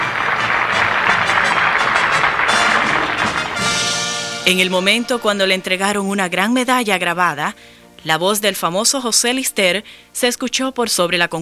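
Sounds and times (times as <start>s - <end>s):
auditorium audience applauding: 0.0s - 4.4s
speech: 4.5s - 11.4s.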